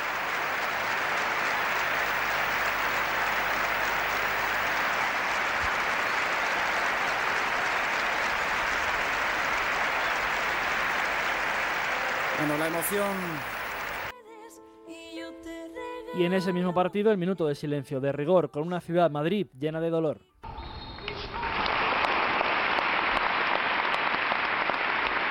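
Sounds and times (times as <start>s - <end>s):
vast stadium crowd applauding: 0.0s - 14.1s, 20.4s - 25.2s
speech: 12.4s - 13.6s, 16.2s - 20.3s.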